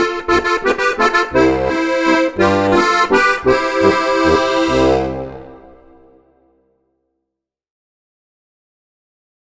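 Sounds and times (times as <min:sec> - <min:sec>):
landler dance music: 0:00.0 - 0:06.1.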